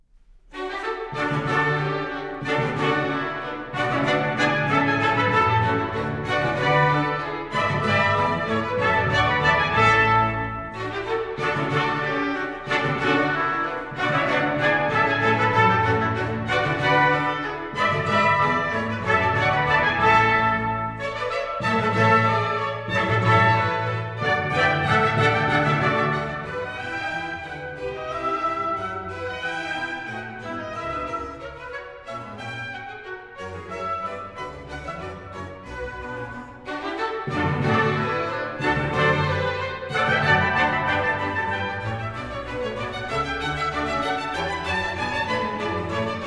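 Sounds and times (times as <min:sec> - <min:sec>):
orchestral suite bourree movement: 0:00.2 - 0:46.2.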